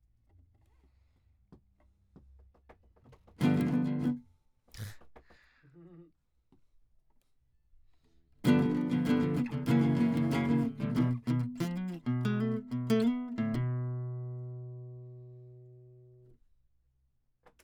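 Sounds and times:
classical guitar: 0:03.4 - 0:04.2, 0:08.4 - 0:16.2.

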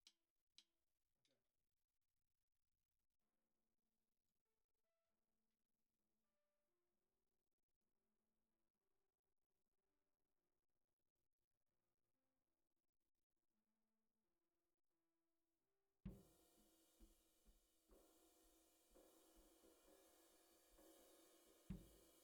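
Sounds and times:
bottom snare drum: 0:16.1 - 0:17.1, 0:18.0 - 0:22.2.

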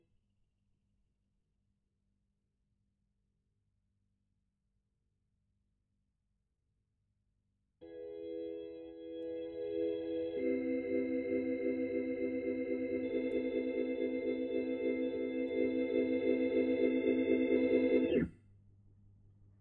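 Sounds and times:
Hammond organ: 0:07.8 - 0:18.3.

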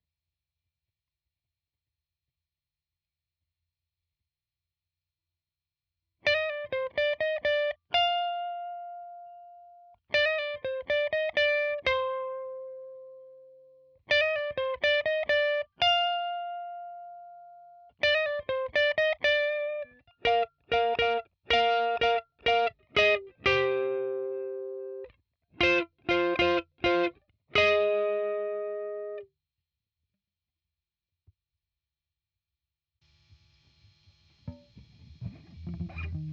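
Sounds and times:
guitar: 0:06.2 - 0:29.3, 0:33.3 - 0:36.3.

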